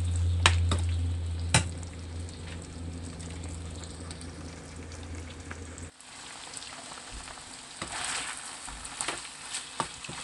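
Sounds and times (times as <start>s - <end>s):
low hum: 0.0s - 5.9s
chicken frying on a high flame: 0.0s - 10.2s.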